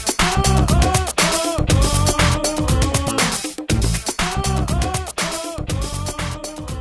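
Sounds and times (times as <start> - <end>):
voice saying ooh yeah: 0.2 - 3.5, 4.3 - 6.7.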